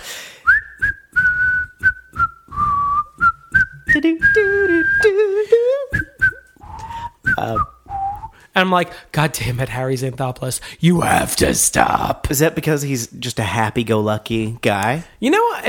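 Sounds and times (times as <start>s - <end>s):
person whistling a tune: 0.4s - 8.4s
speech: 4.0s - 5.5s, 8.6s - 15.6s.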